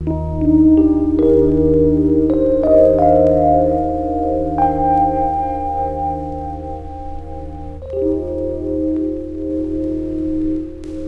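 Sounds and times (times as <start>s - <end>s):
melodic synth drum and bass: 0.0s - 11.0s.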